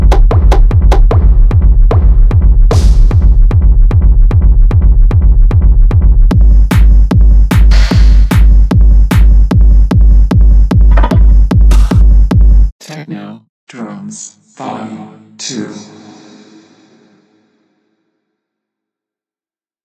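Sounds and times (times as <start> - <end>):
techno drums: 0.0 - 12.7.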